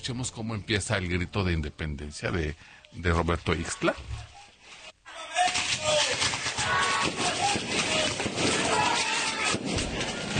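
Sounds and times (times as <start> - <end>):
speech: 0.0 - 4.3
crowd noise and voices: 3.6 - 10.3
fireworks crackling and popping: 4.8 - 10.3.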